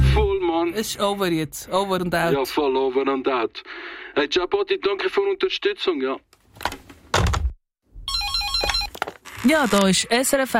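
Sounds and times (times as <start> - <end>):
speech: 0.6 - 6.7, 9.4 - 10.5
telephone ringing with an electronic warbling tone: 8.0 - 9.1.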